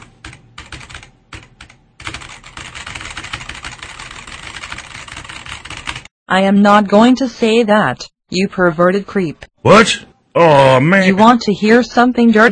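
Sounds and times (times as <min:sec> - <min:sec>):
typing on a computer keyboard: 0:00.0 - 0:06.1
speech: 0:06.3 - 0:12.5.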